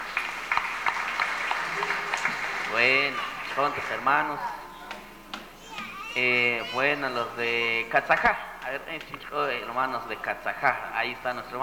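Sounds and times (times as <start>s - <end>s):
crowd applause at a community gathering: 0.0s - 8.8s
laughter: 0.0s - 11.2s
speech: 2.7s - 4.6s, 6.2s - 11.6s.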